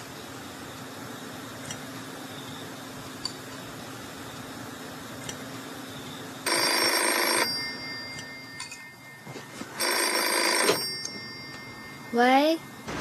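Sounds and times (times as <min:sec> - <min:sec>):
telephone ringing: 0:06.4 - 0:12.9.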